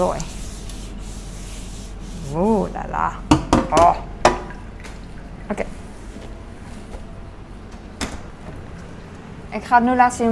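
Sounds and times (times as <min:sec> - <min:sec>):
speech: 0:00.0 - 0:00.4, 0:02.3 - 0:04.1, 0:05.5 - 0:05.8, 0:09.5 - 0:10.3
cloth wiping a pan: 0:00.0 - 0:02.8.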